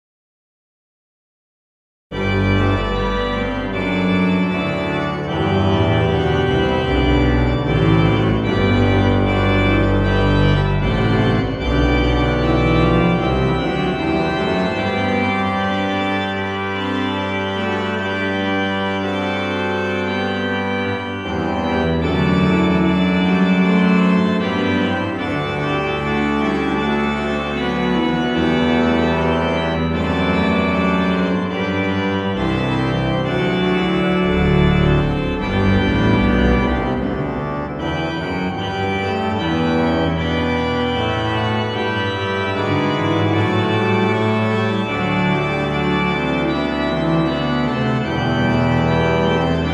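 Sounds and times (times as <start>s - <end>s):
organ music in Souvigny: 2.1s - 49.7s.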